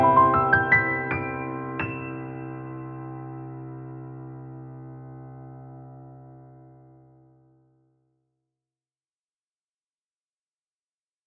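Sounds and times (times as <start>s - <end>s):
piano piece: 0.0s - 7.6s.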